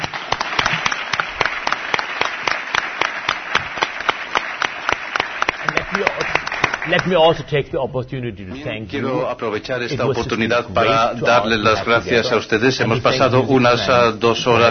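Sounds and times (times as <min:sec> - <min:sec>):
audience applause: 0:00.0 - 0:07.4
speech: 0:06.9 - 0:14.6.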